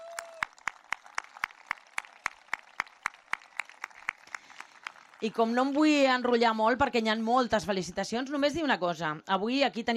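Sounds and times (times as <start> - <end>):
audience applause: 0.0 - 6.3
speech: 5.2 - 9.9.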